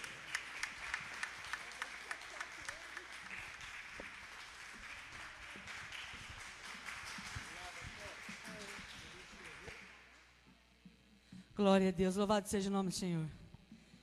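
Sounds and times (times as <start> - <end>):
audience applause: 0.0 - 10.1
speech: 11.6 - 13.4.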